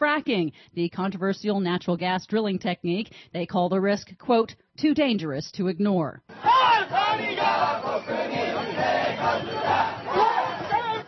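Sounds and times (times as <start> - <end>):
speech: 0.0 - 10.0
protest crowd chanting in street: 6.3 - 11.0.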